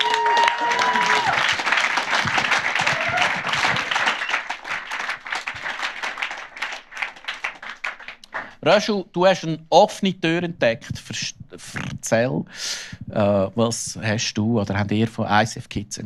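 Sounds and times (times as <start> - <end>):
audience applause: 0.0 - 8.6
faint whistles: 4.1 - 4.5
speech: 8.7 - 16.0.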